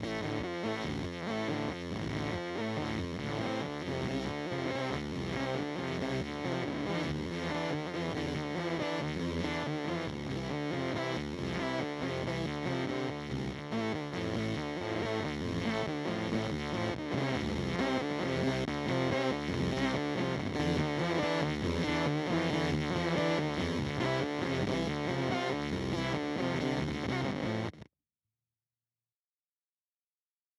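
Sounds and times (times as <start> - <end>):
Pigtronix Space Rip guitar effect pedal sound: 0.0 - 27.9.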